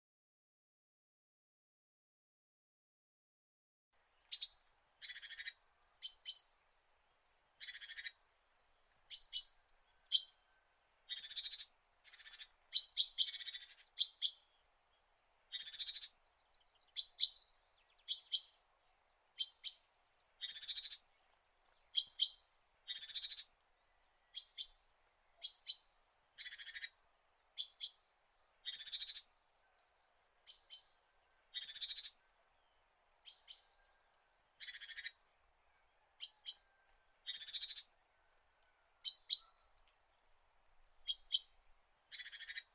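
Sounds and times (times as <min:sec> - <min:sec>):
songbird: 0:04.0 - 0:42.7
female Java sparrow: 0:04.2 - 0:07.0, 0:07.6 - 0:08.2, 0:11.1 - 0:18.7, 0:19.4 - 0:21.1, 0:24.3 - 0:27.0, 0:27.6 - 0:29.9, 0:30.5 - 0:32.2, 0:33.2 - 0:37.9, 0:39.0 - 0:40.2, 0:41.0 - 0:42.7
canary: 0:04.3 - 0:07.0, 0:07.6 - 0:08.2, 0:11.1 - 0:16.1, 0:21.9 - 0:23.5, 0:24.3 - 0:27.0, 0:27.6 - 0:29.3, 0:30.5 - 0:32.2, 0:33.3 - 0:34.0, 0:34.6 - 0:35.5, 0:36.2 - 0:37.9, 0:39.0 - 0:39.8, 0:41.1 - 0:42.7.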